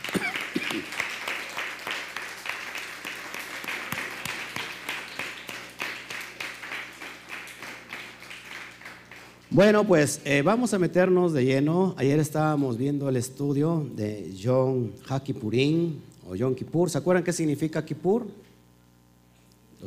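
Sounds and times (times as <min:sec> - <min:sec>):
audience applause: 0:00.0 - 0:09.5
speech: 0:09.6 - 0:18.4.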